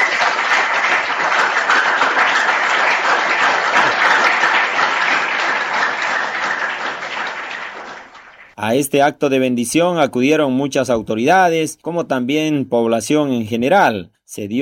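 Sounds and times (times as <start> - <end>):
audience applause: 0.0 - 8.6
speech: 8.7 - 14.5.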